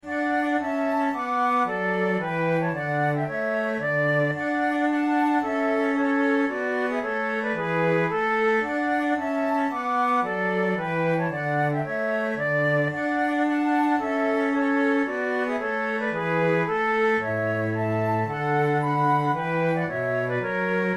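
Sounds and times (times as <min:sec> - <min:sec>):
flute playing a trio sonata gavotte: 0:00.0 - 0:20.9.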